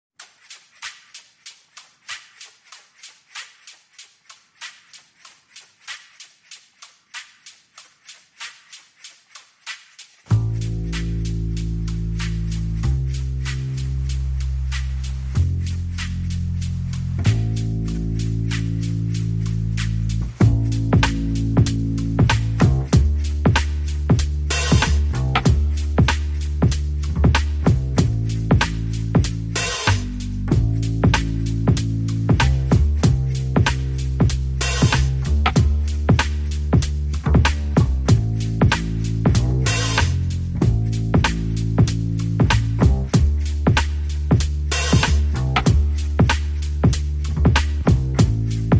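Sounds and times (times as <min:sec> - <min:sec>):
drums: 0:00.2 - 0:48.7
bass: 0:10.2 - 0:48.7.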